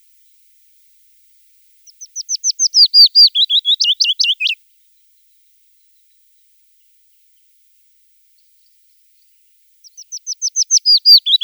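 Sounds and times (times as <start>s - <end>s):
willow warbler singing: 1.8s - 4.6s, 9.8s - 11.4s.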